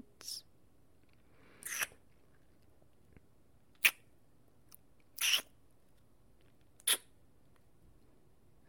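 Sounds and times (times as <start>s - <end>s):
wet noises: 1.6s - 2.0s, 5.1s - 5.6s, 6.8s - 7.1s.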